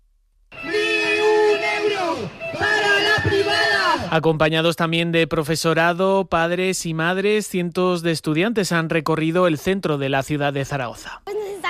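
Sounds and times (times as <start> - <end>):
students on a protest march chanting in central Zaragoza: 0.6 - 4.1
speech: 4.1 - 11.6.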